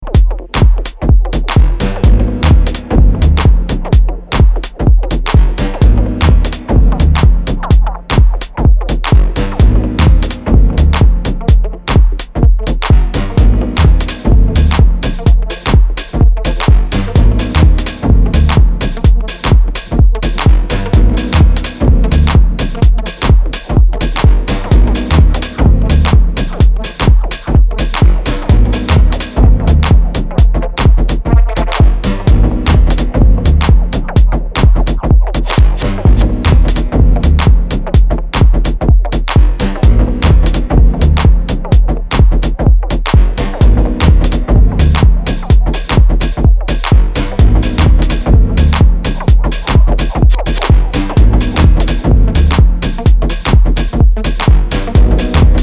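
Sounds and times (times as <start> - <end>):
dub music: 0.0 - 55.6.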